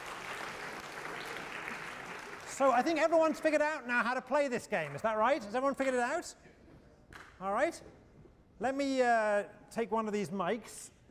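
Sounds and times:
crowd applause: 0:00.0 - 0:03.7
speech: 0:02.6 - 0:06.6, 0:07.4 - 0:08.0, 0:08.6 - 0:11.0.

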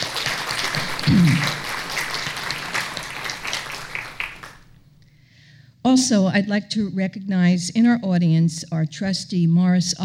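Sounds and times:
audience applause at a New York Historical event: 0:00.0 - 0:04.8
speech: 0:05.9 - 0:10.0.

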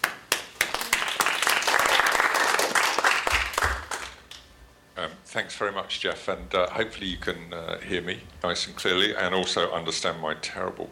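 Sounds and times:
audience applause welcoming a speaker: 0:00.0 - 0:04.2
speech: 0:05.4 - 0:10.9.

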